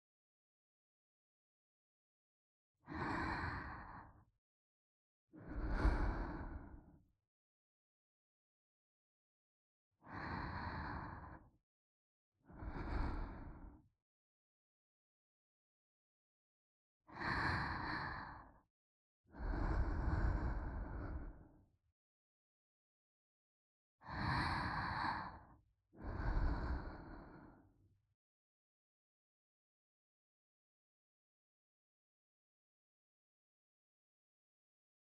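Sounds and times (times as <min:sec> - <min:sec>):
mother breathing slowly as a lullaby: 0:02.9 - 0:04.2, 0:05.4 - 0:06.9, 0:10.0 - 0:11.5, 0:12.5 - 0:13.8, 0:17.1 - 0:18.6, 0:19.3 - 0:21.6, 0:24.0 - 0:27.7.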